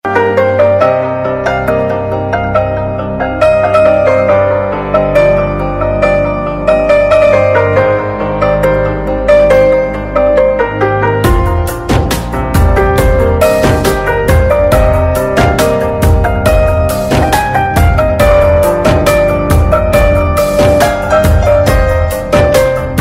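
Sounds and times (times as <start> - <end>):
love music: 0.0 - 22.9.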